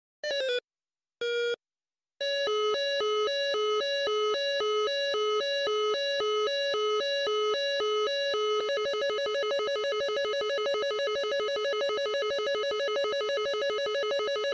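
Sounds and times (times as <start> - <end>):
F18 lock-on tone ringtone: 2.2 - 14.5.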